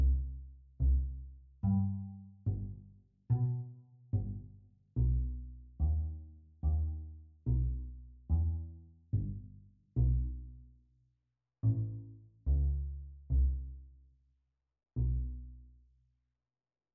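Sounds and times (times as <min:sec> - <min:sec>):
cello: 0:00.0 - 0:10.6, 0:11.6 - 0:13.8, 0:15.0 - 0:15.6
double bass: 0:00.0 - 0:10.8, 0:11.6 - 0:14.0, 0:15.0 - 0:15.7.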